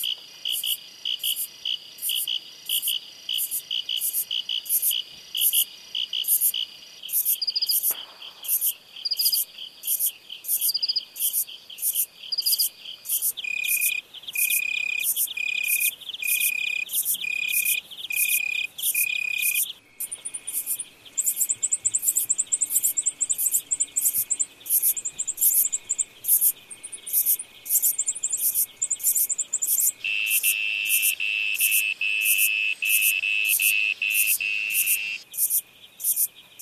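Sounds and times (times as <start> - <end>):
crickets chirping: 0.0 - 36.6.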